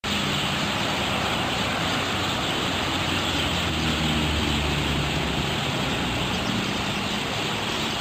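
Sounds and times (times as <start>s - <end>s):
starling calls: 0.1s - 7.9s.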